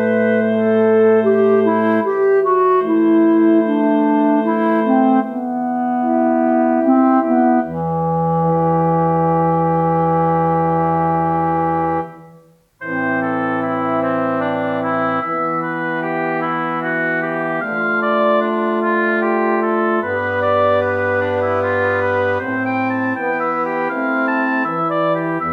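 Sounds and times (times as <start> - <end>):
fortissimo wind instruments playing without flute: 0.0 - 25.5.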